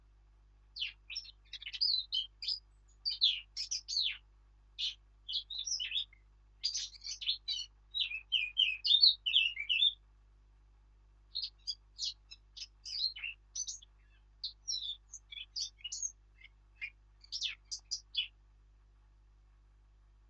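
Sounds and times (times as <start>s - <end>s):
Eurasian blackcap Sylvia atricapilla warbling song: 0.8s - 4.2s, 4.8s - 10.0s, 11.3s - 18.4s.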